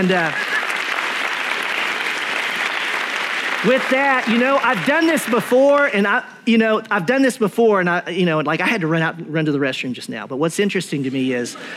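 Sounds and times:
speech: 0:00.0 - 0:00.5, 0:03.6 - 0:11.7
audience applauding: 0:00.0 - 0:06.2.

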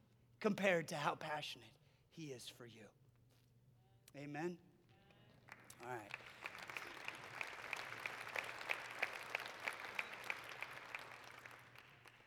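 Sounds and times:
speech: 0:00.4 - 0:03.0, 0:04.1 - 0:04.7, 0:05.8 - 0:06.4
audience clapping: 0:05.3 - 0:12.2.

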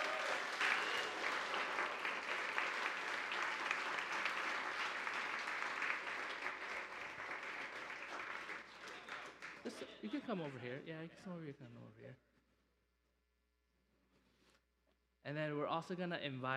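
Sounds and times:
applause: 0:00.0 - 0:10.8
speech: 0:10.0 - 0:12.3, 0:15.3 - 0:16.5.

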